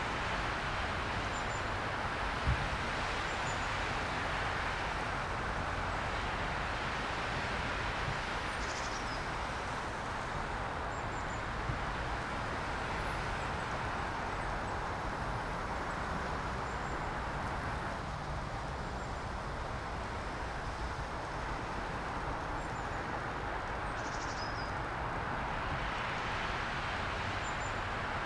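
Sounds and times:
tires on wet tarmac: 0.0 - 8.6, 9.2 - 24.0, 24.7 - 28.2
rain: 0.0 - 28.2.

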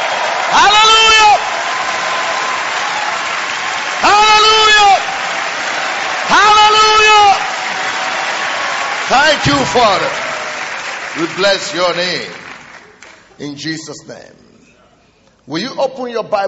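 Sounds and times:
audience shouting: 0.0 - 11.3
audience applause: 0.0 - 13.3
speech: 9.1 - 10.2, 11.2 - 12.4, 13.4 - 14.4, 15.5 - 16.4.

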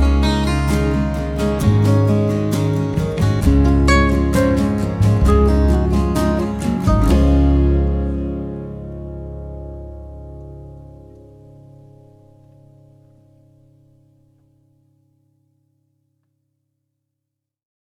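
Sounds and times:
music for reading: 0.0 - 12.2.

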